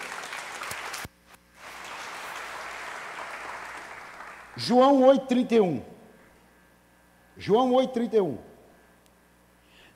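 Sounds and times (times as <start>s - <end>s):
crowd applauding: 0.0s - 4.7s
speech: 4.6s - 5.9s, 7.4s - 8.5s.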